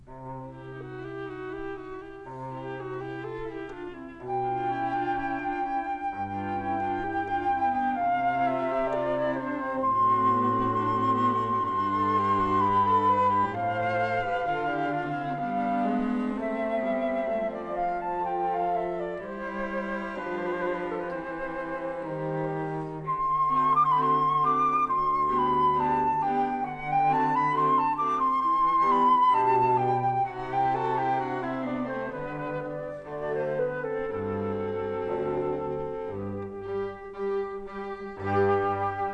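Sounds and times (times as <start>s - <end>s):
flute quartet: 0.0s - 39.1s.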